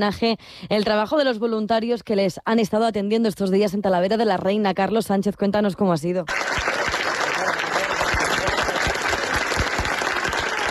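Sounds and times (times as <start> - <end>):
speech: 0.0 - 6.7
applause: 6.3 - 10.6.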